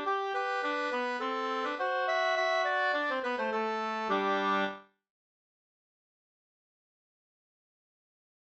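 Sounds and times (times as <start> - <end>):
slängpolska folk dance tune: 0.0 - 4.8.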